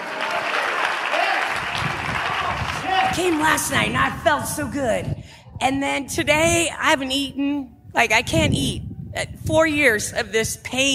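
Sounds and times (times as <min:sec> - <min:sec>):
church congregation clapping during a worship service: 0:00.0 - 0:03.7
speech: 0:03.2 - 0:10.9.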